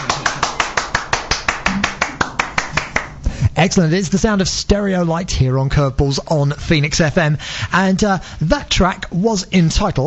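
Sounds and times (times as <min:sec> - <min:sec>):
single pair of hands clapping: 0:00.0 - 0:03.3
speech: 0:03.6 - 0:10.0.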